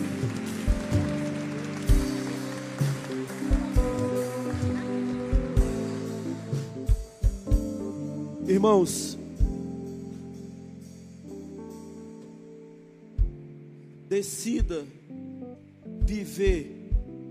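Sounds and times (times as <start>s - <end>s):
audience applauding: 0.0s - 7.0s
low thumping beat: 0.0s - 10.4s, 13.1s - 13.6s, 14.4s - 14.9s, 15.9s - 17.2s
sustained keyboard chords in live music: 0.0s - 17.2s
speech: 8.6s - 9.2s, 14.2s - 15.1s, 16.1s - 16.8s.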